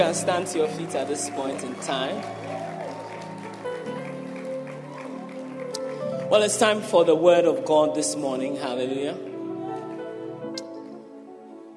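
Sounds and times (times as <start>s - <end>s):
audience clapping hands: 0.0s - 7.0s
speech: 0.1s - 2.7s, 6.3s - 9.3s.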